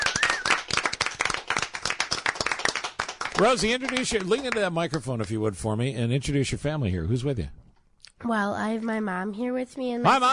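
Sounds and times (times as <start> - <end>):
audience applause for a child honored as Kid of the Year: 0.0 - 5.5
speech: 3.4 - 7.6, 8.2 - 10.3.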